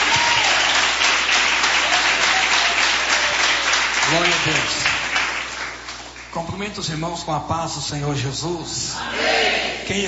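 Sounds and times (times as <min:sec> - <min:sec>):
audience applause: 0:00.0 - 0:06.3
speech: 0:04.1 - 0:04.9, 0:06.3 - 0:10.0.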